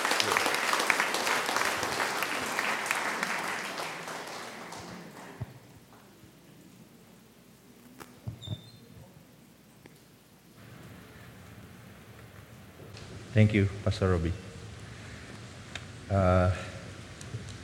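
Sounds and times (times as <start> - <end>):
church congregation applause welcoming a pastor: 0.0 - 5.7
speech: 13.4 - 14.4, 16.1 - 16.7.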